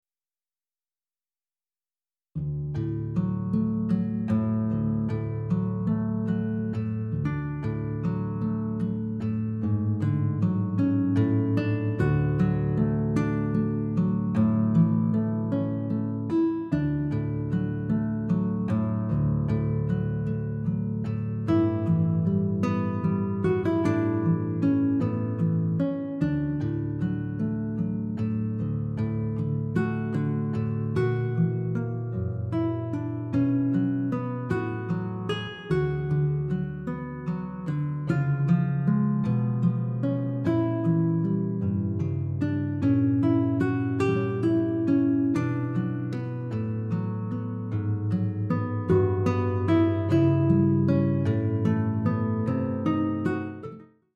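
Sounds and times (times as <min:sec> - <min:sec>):
guitar solo: 0:02.8 - 0:53.9.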